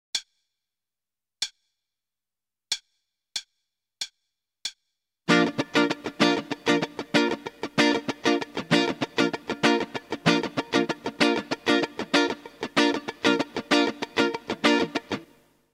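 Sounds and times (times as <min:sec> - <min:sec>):
starter guitar rhythm: 0:05.3 - 0:15.4.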